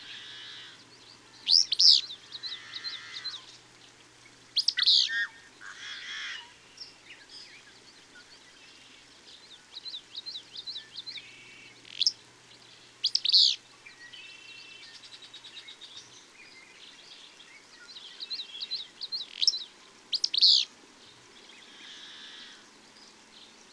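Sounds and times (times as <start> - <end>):
bird song of high sharp chirps: 0.0 - 5.5, 6.3 - 23.7.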